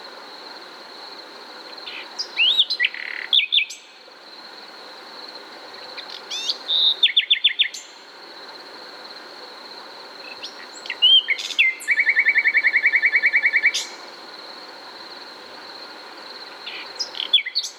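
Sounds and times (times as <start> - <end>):
Common nightingale singing, Luscinia megarhynchos: 1.8 - 3.9, 6.0 - 8.0, 10.2 - 14.0, 16.7 - 17.7.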